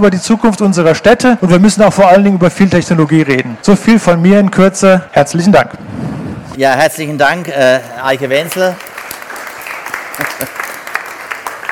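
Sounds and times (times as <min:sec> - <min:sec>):
speech: 0:00.0 - 0:08.9, 0:10.2 - 0:10.6
audience applause: 0:07.2 - 0:11.7.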